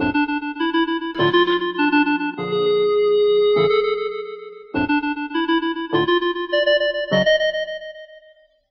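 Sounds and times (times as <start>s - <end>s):
keyboard playing: 0.0s - 8.1s.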